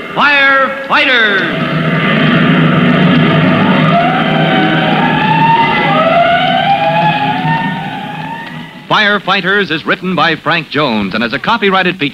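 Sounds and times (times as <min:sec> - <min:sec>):
speech: 0:00.2 - 0:01.8, 0:08.9 - 0:12.1
fire engine siren: 0:01.0 - 0:08.9.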